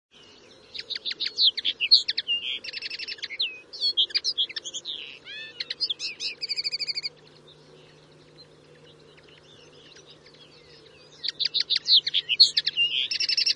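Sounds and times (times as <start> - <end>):
finch calls: 0.7 - 7.3, 7.9 - 13.5.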